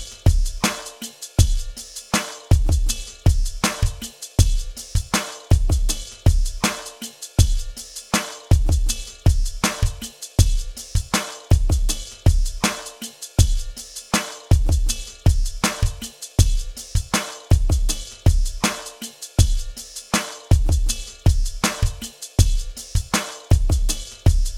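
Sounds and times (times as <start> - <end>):
drum beat: 0.0 - 24.5.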